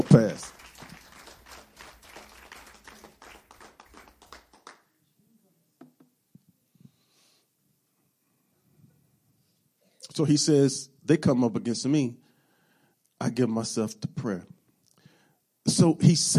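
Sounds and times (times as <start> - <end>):
audience clapping hands: 0.0 - 4.9
speech: 0.2 - 0.6, 10.2 - 12.2, 13.4 - 14.6, 15.8 - 16.3.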